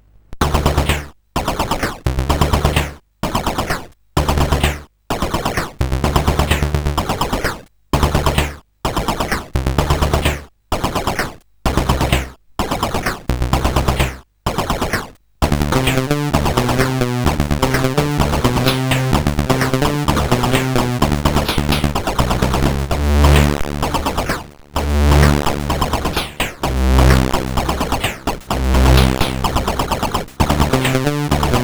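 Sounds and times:
SID CSG8580R5 chip music: 0.4s - 31.6s.

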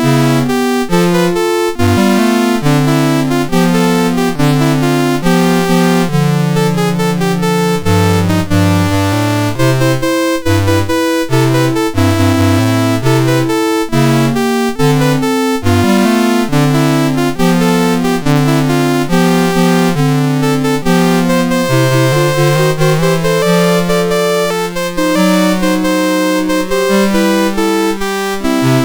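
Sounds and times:
chiptune song on MOS 6581 R2 sound chip: 0.0s - 28.8s.

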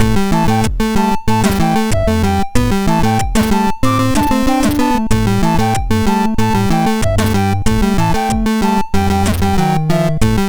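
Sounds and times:
SID MOS6581R3 chip sound: 0.1s - 10.4s.

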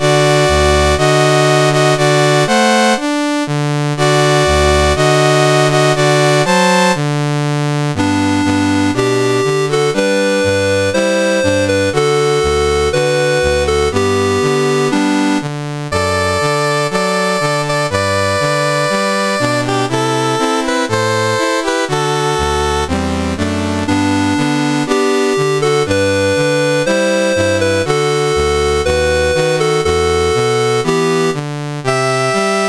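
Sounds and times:
CSG8580R5 chiptune national anthem: 0.0s - 32.6s.

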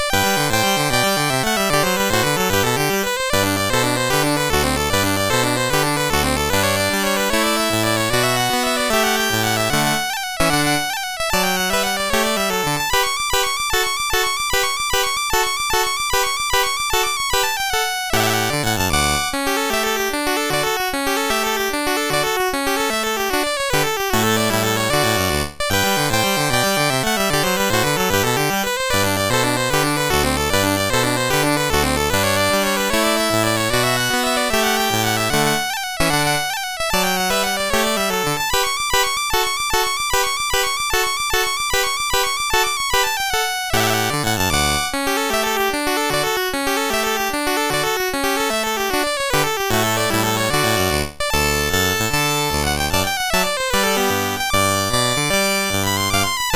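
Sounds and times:
MOS6581R3 chip music piece: 0.0s - 56.5s.

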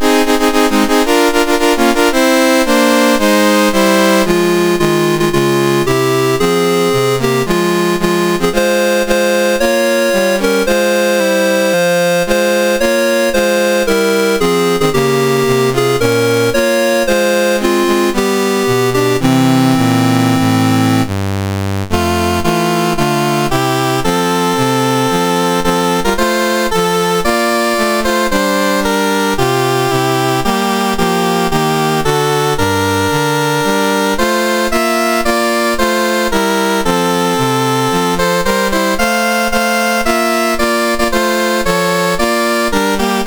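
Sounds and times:
MOS6581R4 SID chip national anthem music: 0.0s - 43.2s.

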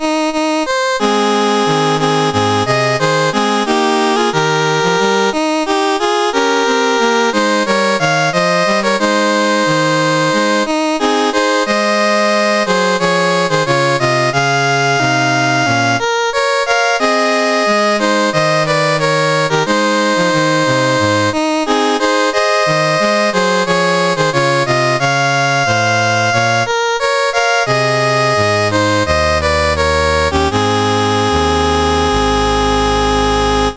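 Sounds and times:
CSG8580R5 chiptune national anthem: 0.0s - 33.7s.

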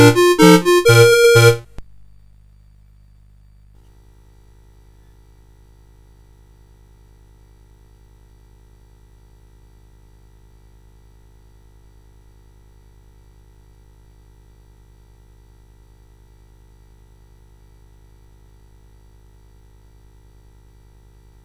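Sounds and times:
polka music: 0.0s - 1.8s.

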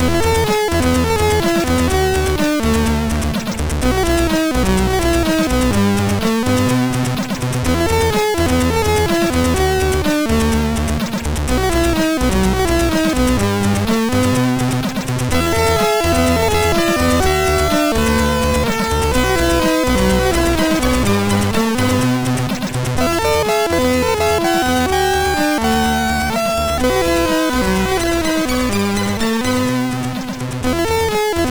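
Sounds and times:
MOS 6581R2 SID chip music: 0.0s - 31.4s.

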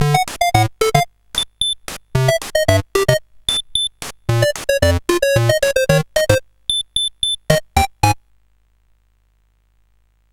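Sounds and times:
SID chiptune music on a CSG8580R5 chip: 0.0s - 6.4s, 7.3s - 8.2s.

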